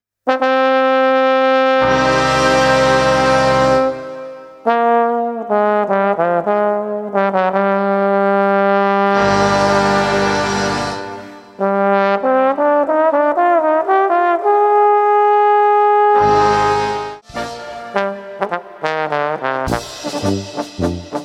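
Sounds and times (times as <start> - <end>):
polka music: 0.3 - 21.2.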